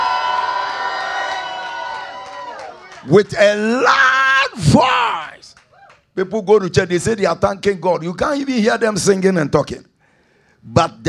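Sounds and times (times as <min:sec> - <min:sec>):
crowd shouting and cheering: 0:00.0 - 0:06.0
speech: 0:03.0 - 0:05.6, 0:06.2 - 0:09.9, 0:10.6 - 0:11.0.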